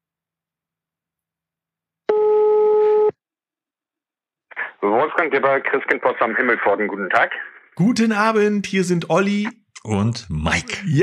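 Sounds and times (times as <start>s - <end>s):
telephone ringing tone: 2.1s - 3.1s
speech: 4.9s - 11.0s.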